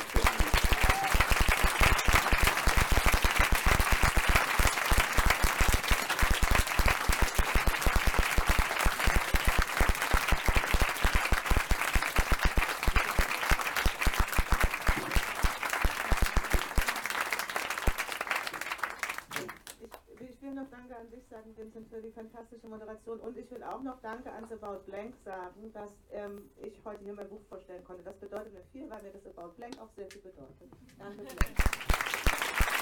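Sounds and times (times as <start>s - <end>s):
thunderous audience applause: 0.0s - 19.8s, 31.4s - 32.8s
speech: 23.4s - 28.2s.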